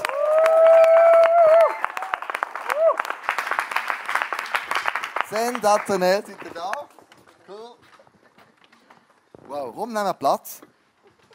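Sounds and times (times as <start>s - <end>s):
audience cheering: 0.0s - 4.5s
audience applause: 0.0s - 7.2s
speech: 5.3s - 6.7s, 9.6s - 10.7s.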